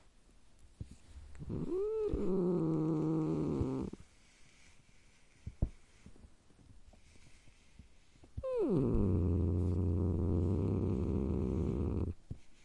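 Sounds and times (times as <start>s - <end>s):
domestic cat growling: 1.4s - 4.0s, 8.4s - 12.2s.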